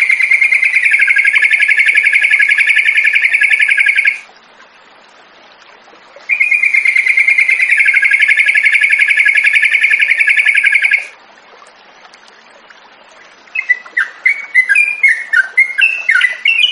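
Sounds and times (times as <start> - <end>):
yellow-vented bulbul singing: 0.0 - 4.2, 6.3 - 11.1, 13.5 - 16.7.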